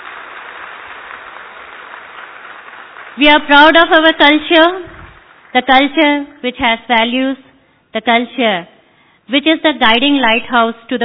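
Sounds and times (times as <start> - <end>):
large crowd applauding: 0.0 - 5.7
speech: 3.2 - 4.9, 5.5 - 8.7, 9.3 - 11.0.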